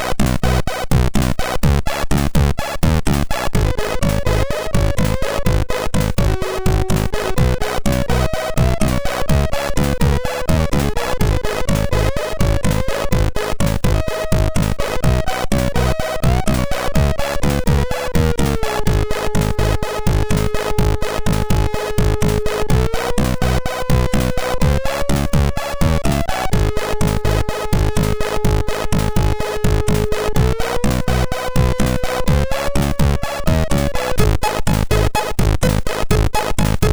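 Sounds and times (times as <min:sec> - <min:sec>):
MOS6581R2 SID chip music: 0:00.2 - 0:36.9.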